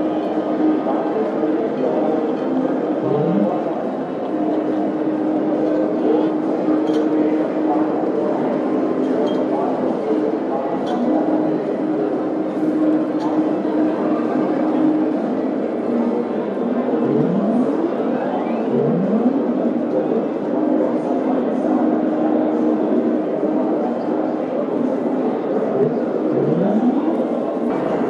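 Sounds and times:
casino chatter: 0.0s - 28.0s
held low tone: 2.9s - 3.8s, 16.9s - 19.9s, 25.7s - 28.0s.

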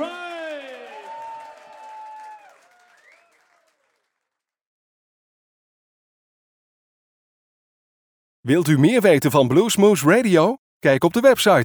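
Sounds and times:
cheering and gliding whoops: 0.0s - 3.5s
audience clapping: 0.0s - 4.6s
speech: 8.4s - 11.6s.

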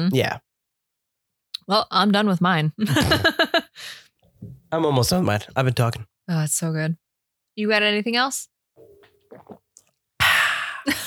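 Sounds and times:
speech: 0.0s - 0.4s, 1.7s - 3.6s, 4.7s - 7.0s, 7.6s - 8.5s
gulping a sip of beer: 8.8s - 10.4s.

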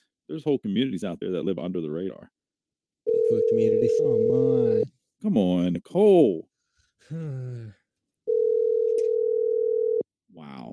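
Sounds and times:
speech: 0.3s - 2.4s, 3.3s - 7.8s, 10.4s - 10.7s
phone ringing tone: 3.1s - 4.9s, 8.3s - 10.0s.

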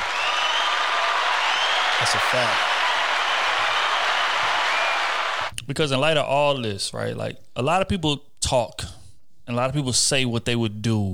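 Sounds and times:
applause: 0.0s - 5.5s
speech: 2.0s - 2.7s, 5.7s - 11.1s.

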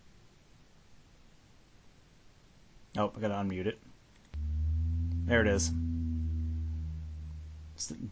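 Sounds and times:
speech: 3.0s - 3.9s, 5.3s - 5.8s, 7.8s - 8.1s
moan like iron bulkheads slowly warping: 4.4s - 8.1s.

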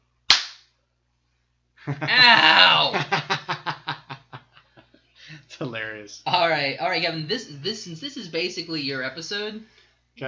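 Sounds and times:
hand clap spiking the audio: 0.3s - 0.6s
speech: 1.8s - 3.3s, 5.5s - 10.2s
laughter: 1.9s - 4.4s, 5.3s - 6.6s.

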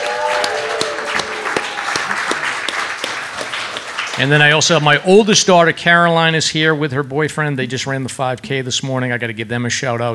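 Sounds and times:
audience applause: 0.0s - 5.0s
speech: 4.2s - 10.1s.

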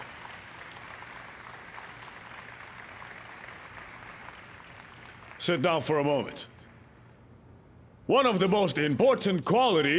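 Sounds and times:
crowd applauding: 0.0s - 5.9s
speech: 5.4s - 6.5s, 8.1s - 9.9s.

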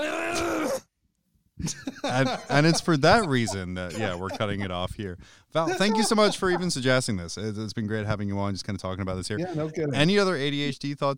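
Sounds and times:
person coughing: 1.6s - 4.7s
laughter: 1.6s - 4.8s, 5.6s - 7.0s
speech: 1.6s - 11.1s.

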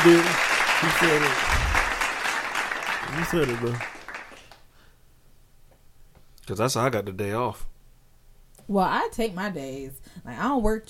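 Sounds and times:
speech: 0.0s - 1.6s, 3.1s - 3.9s, 6.5s - 7.7s, 8.7s - 10.8s
applause: 0.0s - 4.7s.

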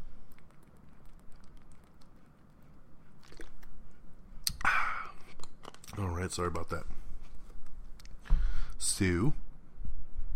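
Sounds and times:
person drinking water: 0.2s - 5.4s
speech: 6.2s - 7.0s, 8.9s - 9.4s.

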